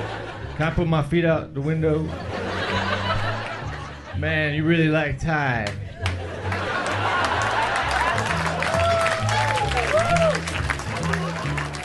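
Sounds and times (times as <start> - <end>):
laughter: 0.0 - 0.9, 1.9 - 4.3, 5.8 - 11.8
speech: 0.6 - 2.3, 4.2 - 5.8
crowd applauding: 6.0 - 11.8
cheering voices: 6.6 - 11.8.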